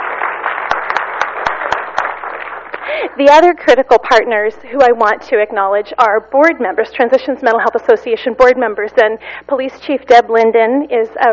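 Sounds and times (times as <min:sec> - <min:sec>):
sharp individual claps: 0:00.0 - 0:03.1
applause at a community event for a mental health campaign: 0:00.0 - 0:03.2
speech: 0:03.2 - 0:11.3.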